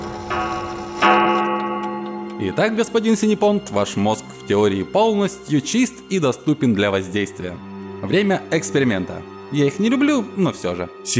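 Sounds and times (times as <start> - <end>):
clockwork mechanism chiming: 0.0 - 4.5
speech: 2.4 - 11.1.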